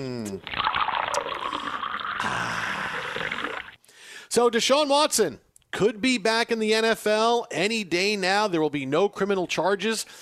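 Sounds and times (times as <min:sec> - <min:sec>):
speech: 0:00.0 - 0:00.7, 0:04.4 - 0:10.1
person sipping a Diet Coke: 0:00.2 - 0:03.8.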